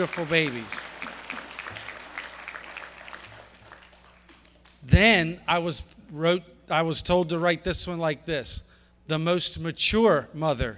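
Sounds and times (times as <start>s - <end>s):
speech: 0.0s - 1.0s, 4.8s - 10.7s
audience applause: 0.0s - 4.7s.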